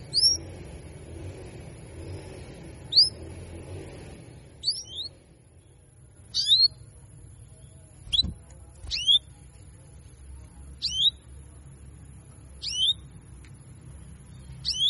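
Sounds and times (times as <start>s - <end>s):
female Belgian canary giving cuit cuit calls: 0.0s - 1.0s, 1.7s - 14.8s.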